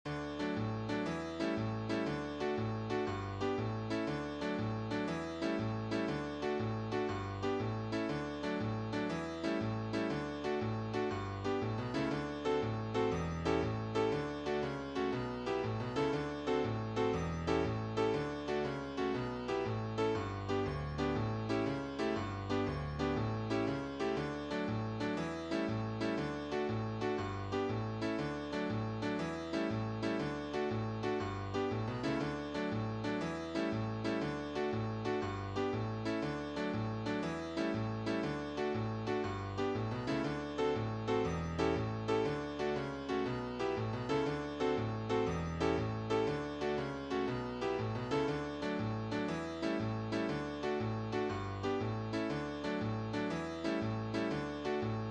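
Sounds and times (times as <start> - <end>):
solo piano jig: 0.1 - 55.0.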